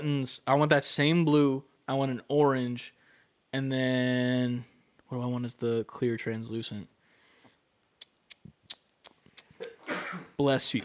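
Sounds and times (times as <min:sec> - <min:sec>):
speech: 0:00.0 - 0:07.0, 0:10.4 - 0:10.8
sneeze: 0:09.4 - 0:10.4.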